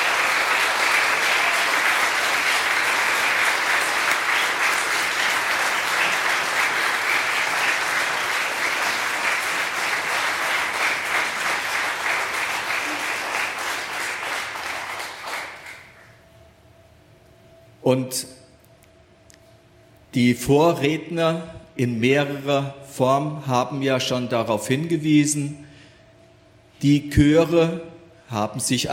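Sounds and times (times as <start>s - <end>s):
audience applause for a choir: 0.0s - 16.1s
speech: 17.9s - 18.4s, 20.2s - 25.6s, 26.8s - 28.9s.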